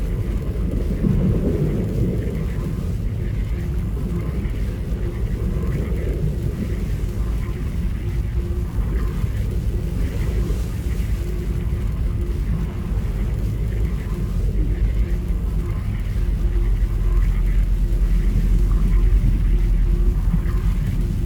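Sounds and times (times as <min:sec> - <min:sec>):
underwater ambience: 0:00.0 - 0:21.2.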